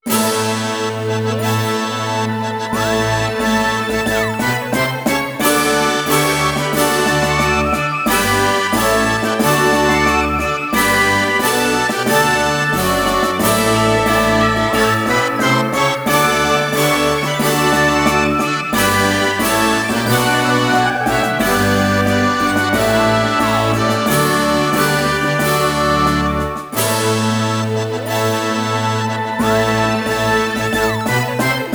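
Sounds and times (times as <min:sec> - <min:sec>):
ceremonial music: 0:00.0 - 0:31.7.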